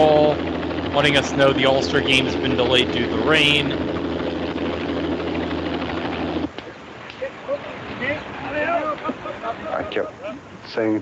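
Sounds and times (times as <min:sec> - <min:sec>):
speech: 0:00.0 - 0:03.9, 0:10.8 - 0:11.0
air ambulance helicopter engine and rotor hum: 0:00.0 - 0:06.6
laughter: 0:07.2 - 0:10.6.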